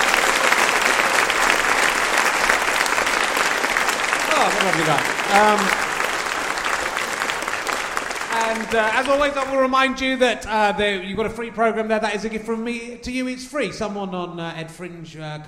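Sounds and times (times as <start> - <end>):
audience applause: 0.0 - 9.8
speech: 4.5 - 5.8, 8.5 - 15.4.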